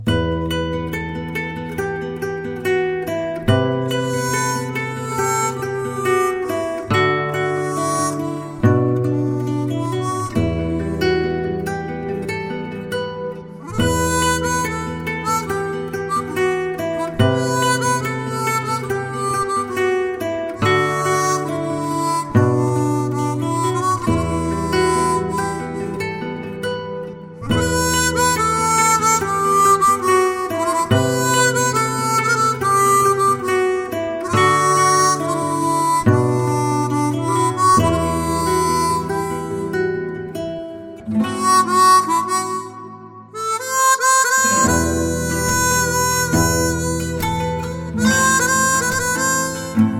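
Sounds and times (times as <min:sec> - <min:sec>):
harmonica: 0:00.0 - 0:49.9.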